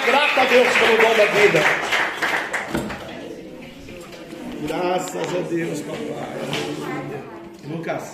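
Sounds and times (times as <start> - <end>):
speech: 0.0 - 2.6, 4.6 - 8.1
group clapping: 0.0 - 3.4
murmur of voices: 0.0 - 8.1.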